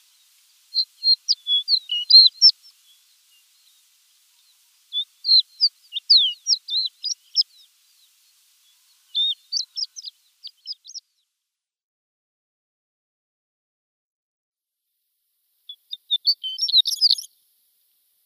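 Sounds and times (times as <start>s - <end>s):
shore lark singing: 0.0s - 11.0s, 15.7s - 17.3s.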